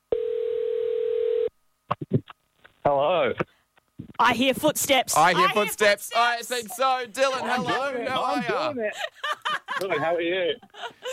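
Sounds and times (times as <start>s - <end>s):
phone call ringing tone: 0.1s - 1.5s
speech: 2.9s - 3.5s, 4.2s - 11.0s
laughter: 6.4s - 11.1s.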